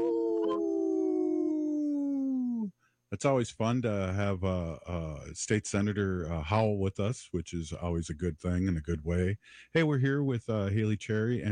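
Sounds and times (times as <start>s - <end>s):
wolf howling: 0.0s - 2.5s
speech: 3.2s - 11.5s.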